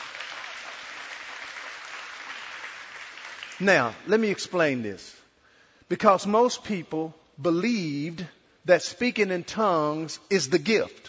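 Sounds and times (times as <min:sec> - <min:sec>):
audience applause: 0:00.0 - 0:03.6
speech: 0:03.6 - 0:05.2, 0:05.9 - 0:11.0.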